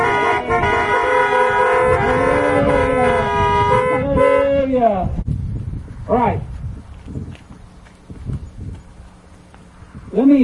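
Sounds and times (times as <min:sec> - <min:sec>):
many car horns honking: 0:00.0 - 0:04.8
speech: 0:04.8 - 0:06.4, 0:10.3 - 0:10.4.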